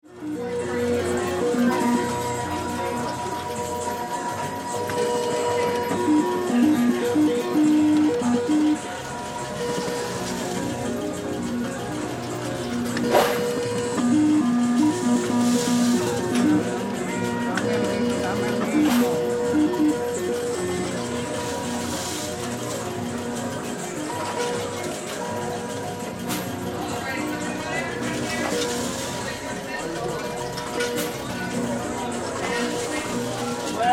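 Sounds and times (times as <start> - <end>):
casino crowd walla: 0.0 - 33.9
casino slot machines: 0.0 - 33.9.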